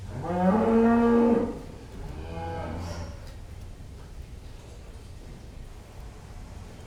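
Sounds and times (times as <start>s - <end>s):
cow mooing in a pen: 0.1s - 3.2s.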